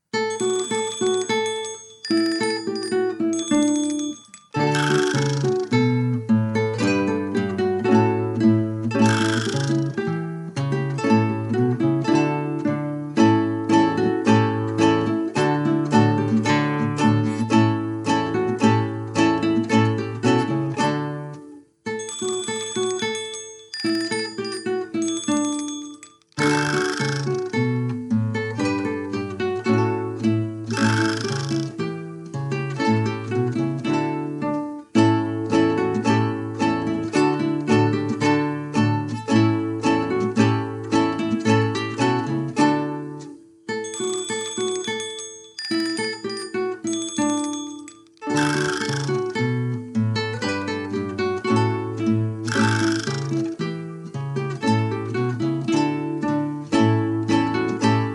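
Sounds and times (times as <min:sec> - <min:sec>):
instrumental music without vocals: 0:00.0 - 0:58.1.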